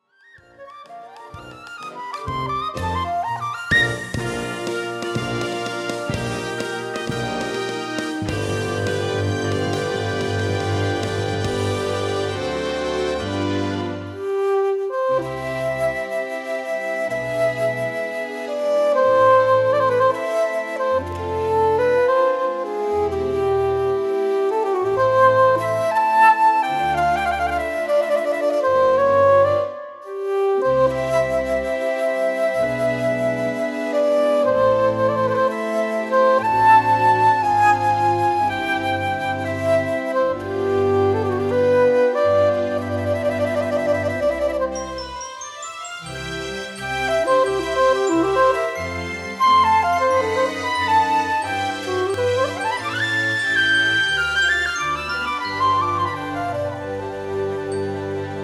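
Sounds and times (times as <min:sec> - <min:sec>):
flute: 0:00.0 - 0:58.4.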